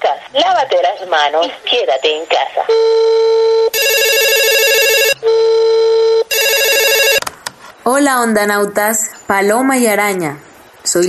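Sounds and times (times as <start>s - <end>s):
speech: 0.1s - 3.8s, 7.9s - 11.0s
telephone ringing: 2.7s - 7.2s.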